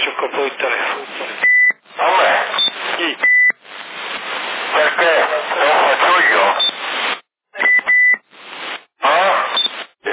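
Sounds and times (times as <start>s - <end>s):
crackly band-limited CB radio static in Sassari: 0.0s - 10.1s
speech: 0.2s - 1.4s
CB radio call signal high-pitched beeps in Sassari: 1.4s - 3.6s, 6.0s - 6.9s, 7.6s - 8.3s, 9.4s - 9.8s.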